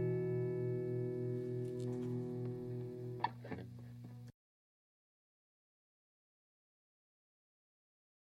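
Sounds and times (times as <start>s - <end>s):
boosted string picking: 0.0s - 4.3s.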